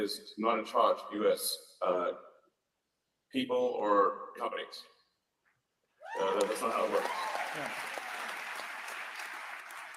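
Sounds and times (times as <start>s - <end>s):
speech: 0.0s - 2.3s, 3.3s - 5.0s, 6.1s - 7.9s
applause: 6.0s - 9.9s.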